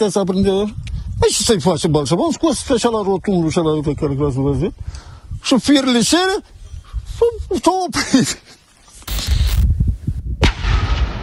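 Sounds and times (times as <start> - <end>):
speech: 0.0 - 6.6, 7.2 - 9.3
controlled detonation of a drone in a field: 10.4 - 11.2.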